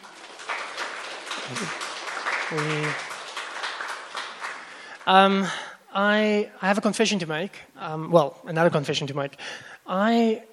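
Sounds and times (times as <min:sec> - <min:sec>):
crowd cheering: 0:00.0 - 0:05.0
audience applause: 0:00.0 - 0:05.5
speech: 0:01.5 - 0:01.9, 0:02.5 - 0:03.1, 0:05.0 - 0:10.5.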